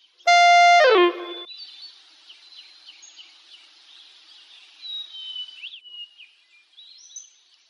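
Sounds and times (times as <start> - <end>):
whistle blast signalling students to sit down: 0.3 - 1.5.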